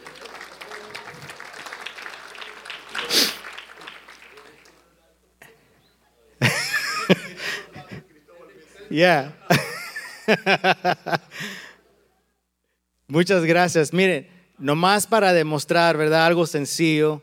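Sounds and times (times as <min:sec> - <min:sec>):
audience applause: 0:00.0 - 0:04.8
laughter: 0:06.4 - 0:08.1, 0:09.4 - 0:11.6
speech: 0:07.1 - 0:07.3, 0:08.9 - 0:09.6, 0:10.3 - 0:11.5, 0:13.1 - 0:17.2.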